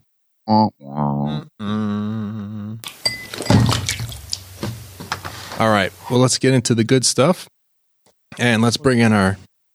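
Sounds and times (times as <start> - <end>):
sipping beer from a glass: 0.5 - 3.5
speech: 6.1 - 7.5, 8.3 - 9.5.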